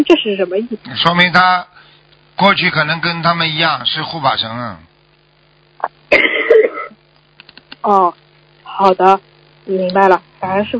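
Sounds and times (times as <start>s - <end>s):
speech: 0.0s - 1.7s, 2.4s - 4.9s, 5.8s - 6.3s, 7.8s - 8.2s, 8.8s - 10.7s
cough: 6.1s - 7.0s.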